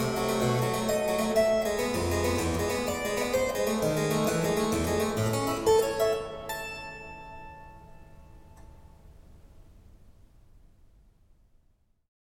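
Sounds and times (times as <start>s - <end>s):
baroque keyboard partita gigue in B flat: 0.0s - 6.5s.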